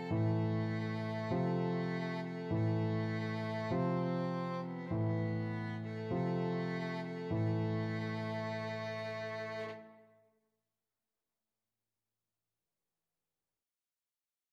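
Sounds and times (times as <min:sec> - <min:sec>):
violin playing funeral march: 0:00.0 - 0:09.9.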